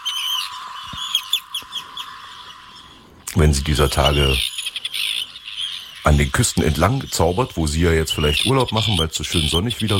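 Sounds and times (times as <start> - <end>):
Arctic tern calling: 0.0 - 9.9
speech: 3.4 - 4.6, 6.0 - 9.9.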